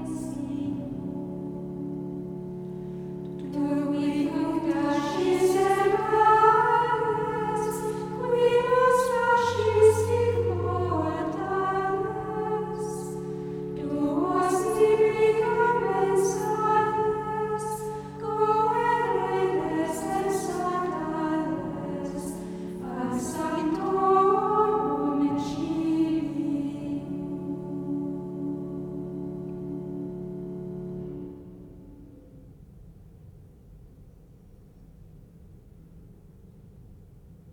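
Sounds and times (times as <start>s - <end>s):
choir singing a sacred piece: 0.0s - 2.5s, 3.2s - 32.1s.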